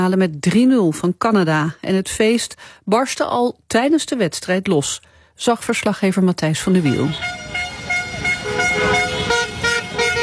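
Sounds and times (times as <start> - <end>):
speech: 0.0 - 7.5
street traffic rumble: 5.9 - 10.2
car horns honking in celebration: 6.7 - 10.2.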